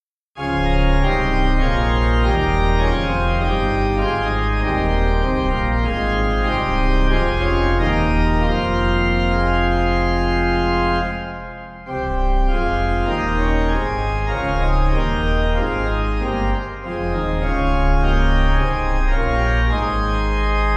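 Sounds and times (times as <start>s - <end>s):
organ playing a hymn: 0.4s - 20.7s.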